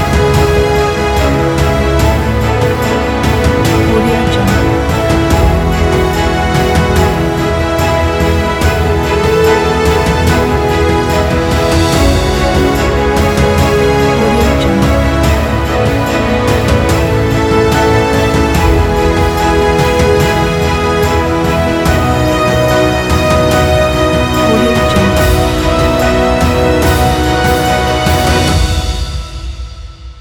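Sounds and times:
inspiring epic cinematic piano music: 0.0s - 30.1s.

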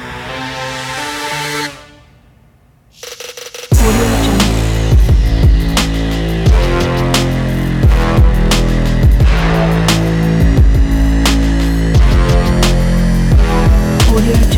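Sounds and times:
fashion sport trap beat with vocal: 3.0s - 14.5s.

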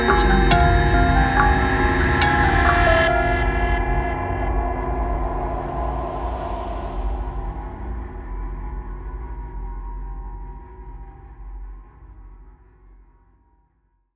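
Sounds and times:
cinematic halloween horror bells: 0.0s - 7.2s.

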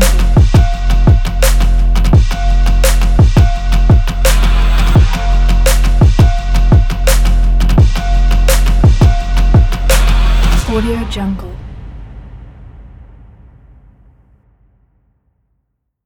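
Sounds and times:
Arabic trap music: 0.0s - 10.9s.

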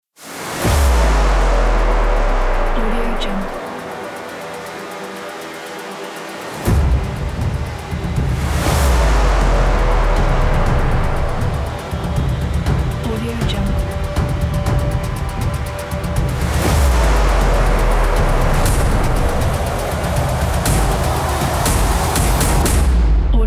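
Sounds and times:
epic game opener ident music: 0.2s - 13.0s, 13.7s - 23.3s.

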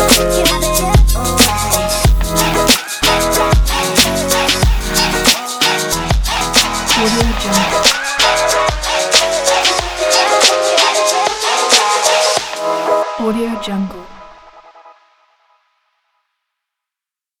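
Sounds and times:
jazzy hip hop: 0.0s - 13.1s.

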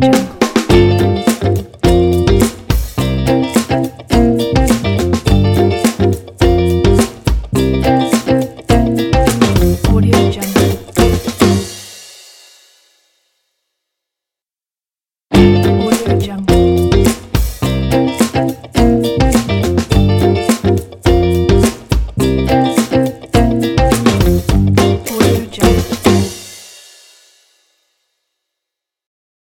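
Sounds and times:
funky music intro: 0.1s - 12.1s, 15.3s - 26.8s.

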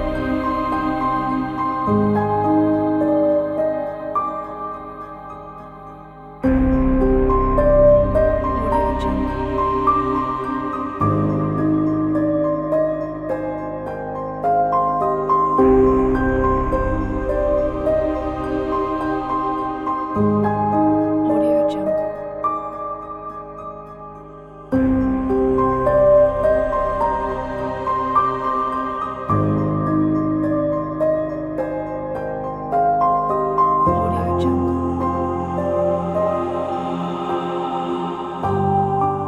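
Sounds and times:
sad emotional piano soundscape: 0.0s - 39.2s.

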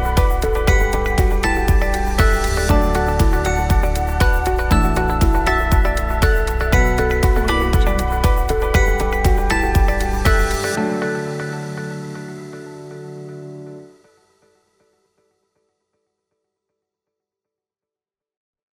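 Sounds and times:
upbeat and inspiring corporate music: 0.0s - 13.2s.

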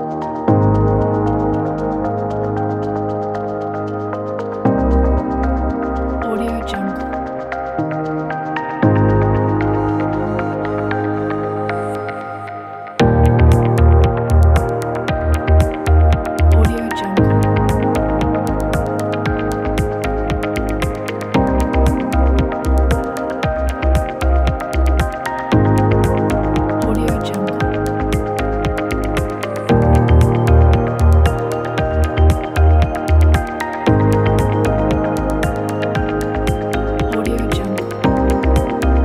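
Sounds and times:
minimal technology inspiring corporate music: 0.0s - 39.0s.

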